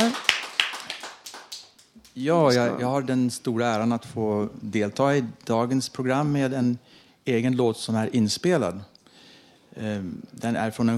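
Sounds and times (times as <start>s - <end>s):
hand claps: 0.0s - 2.2s
speech: 2.2s - 8.9s, 9.8s - 10.9s.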